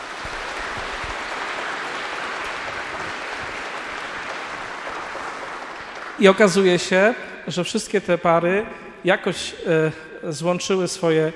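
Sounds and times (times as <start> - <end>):
audience applause: 0.0 - 7.0
speech: 6.2 - 11.3.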